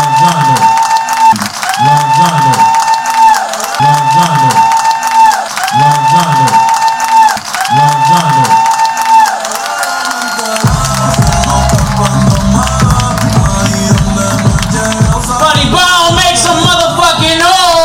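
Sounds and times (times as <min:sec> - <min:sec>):
audience clapping and cheering: 0:00.0 - 0:17.8
repeating musical loop with a bright melodic line: 0:10.6 - 0:17.4.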